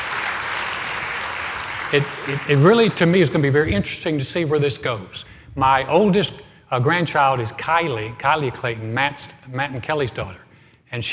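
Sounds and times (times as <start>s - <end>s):
applause: 0.0s - 3.5s
speech: 1.9s - 11.1s.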